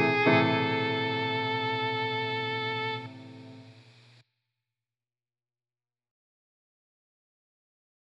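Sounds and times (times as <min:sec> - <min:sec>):
piano: 0:00.0 - 0:03.7
violin: 0:00.0 - 0:03.7.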